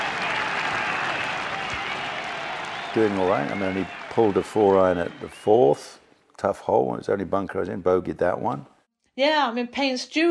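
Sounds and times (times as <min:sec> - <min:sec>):
golf gallery applause: 0:00.0 - 0:05.8
speech: 0:02.9 - 0:10.2.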